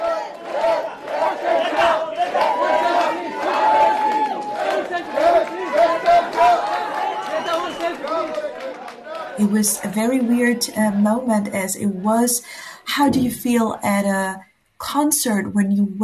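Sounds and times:
crowd of supporters cheering at airport: 0:00.0 - 0:12.4
speech: 0:09.4 - 0:16.0.

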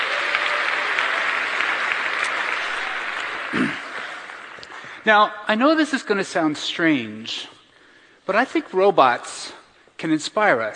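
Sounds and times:
audience clapping: 0:00.0 - 0:05.2
speech: 0:05.0 - 0:07.6, 0:08.3 - 0:10.7.

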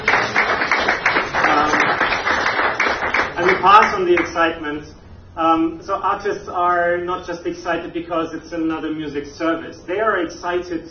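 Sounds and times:
crowd applause: 0:00.0 - 0:04.3
speech: 0:03.6 - 0:10.8.

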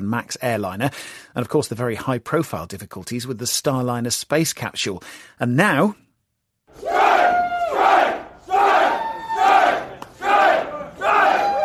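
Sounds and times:
speech: 0:00.0 - 0:06.0, 0:06.7 - 0:07.1
crowd of Boeing workers chanting strike: 0:06.7 - 0:11.6.

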